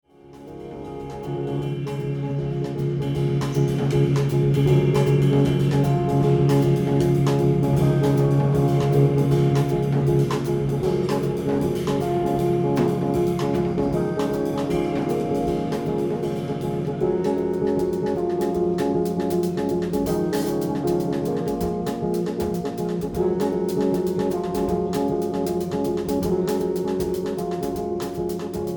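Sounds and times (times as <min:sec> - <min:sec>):
outro music: 0:00.2 - 0:28.7.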